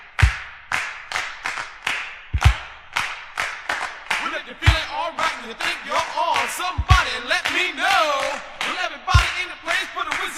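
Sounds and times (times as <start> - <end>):
audience clapping hands: 0.1 - 10.3
speech: 5.4 - 10.3.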